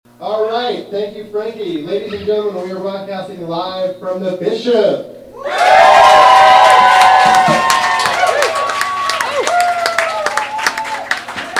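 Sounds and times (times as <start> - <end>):
speech: 0.2 - 5.8
enthusiastic crowd cheering: 5.4 - 11.5.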